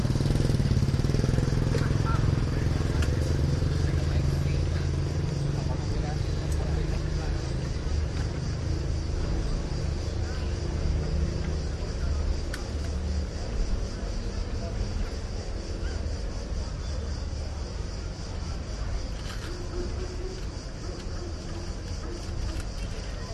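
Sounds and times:
Athens side street ambience on a weekday evening: 0:00.0 - 0:23.3.

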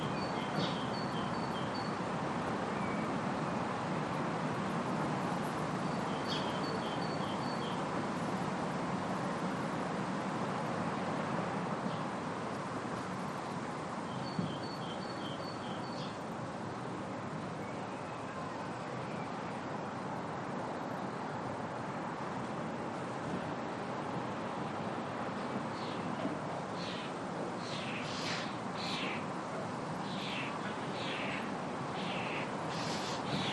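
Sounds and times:
afternoon birds in a residential area: 0:00.0 - 0:03.8, 0:04.6 - 0:08.4, 0:13.0 - 0:16.8, 0:25.4 - 0:33.5
distant traffic: 0:00.0 - 0:33.5.

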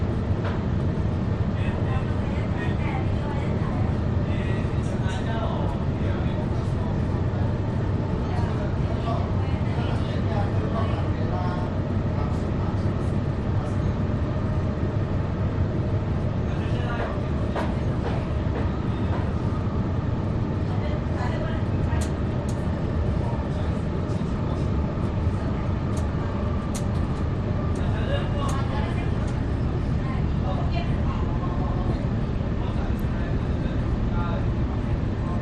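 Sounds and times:
metro train interior between stations: 0:00.0 - 0:35.4.

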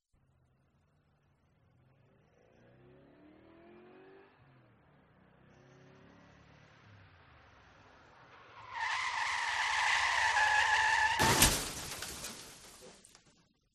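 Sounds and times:
car crash: 0:08.4 - 0:13.5.

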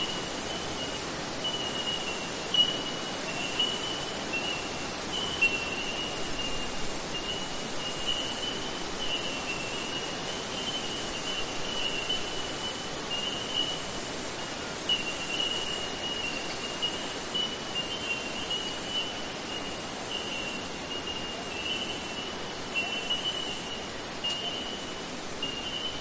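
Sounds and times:
Bell Miner tink calls: 0:00.0 - 0:25.9.

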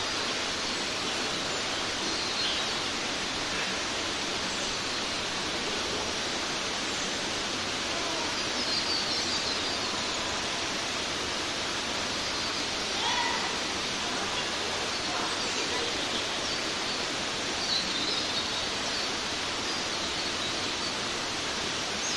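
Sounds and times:
forest creek water flowing in Queensland Australia: 0:00.0 - 0:22.1
distant young adults screaming while swimming in Queensland Australia: 0:12.9 - 0:14.4.

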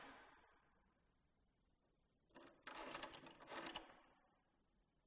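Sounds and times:
reverberating old wooden door lock in an abandoned mansion hallway: 0:02.4 - 0:03.9.

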